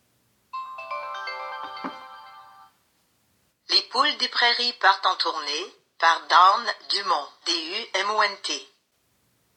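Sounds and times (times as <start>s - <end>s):
player melodic power-on chime: 0.6s - 2.7s
speech: 4.0s - 8.7s.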